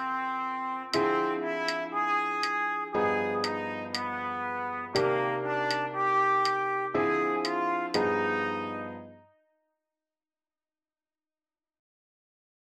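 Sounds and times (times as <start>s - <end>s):
open-voiced chords with lots of tensions: 1.0s - 9.2s.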